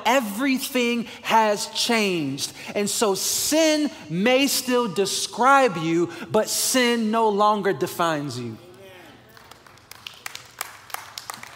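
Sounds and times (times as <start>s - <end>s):
speech: 0.0s - 8.7s
audience clapping: 9.0s - 11.5s.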